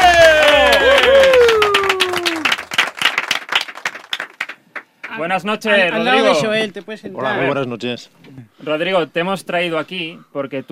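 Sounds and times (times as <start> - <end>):
audience applause: 0.0 - 4.9
speech: 5.3 - 10.7.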